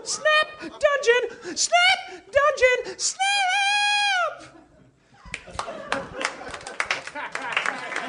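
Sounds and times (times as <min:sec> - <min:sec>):
speech: 0:00.1 - 0:03.7
laughter: 0:04.3 - 0:08.0
audience clapping wearily: 0:05.3 - 0:08.0.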